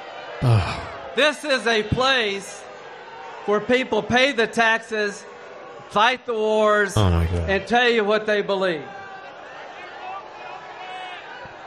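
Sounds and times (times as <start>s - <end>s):
crowd booing a speaker at a public address: 0.4s - 1.1s
speech: 0.4s - 2.6s, 3.4s - 5.3s, 5.9s - 9.0s.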